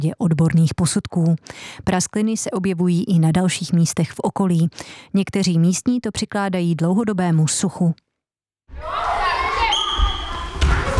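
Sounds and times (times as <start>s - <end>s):
speech: 0.0s - 8.1s, 8.7s - 9.2s
people shouting in a school gym: 8.8s - 9.9s.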